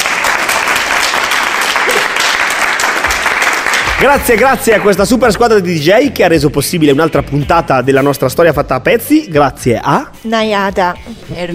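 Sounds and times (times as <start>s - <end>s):
applause: 0.0s - 5.0s
speech: 4.0s - 11.5s.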